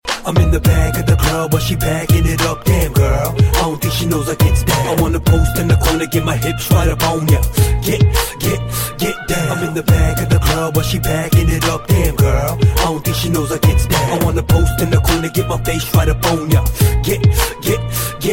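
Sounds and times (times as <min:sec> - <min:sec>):
Arabic hip hop remix: 0:00.0 - 0:18.3.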